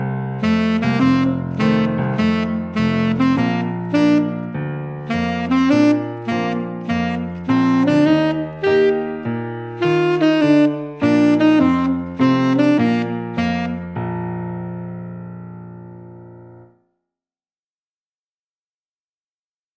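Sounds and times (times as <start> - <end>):
tenor saxophone etude: 0.3 - 15.1.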